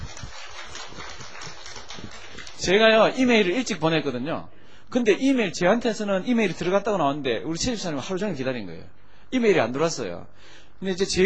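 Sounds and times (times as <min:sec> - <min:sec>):
audience clapping hands: 0:00.0 - 0:03.0
speech: 0:02.6 - 0:11.2.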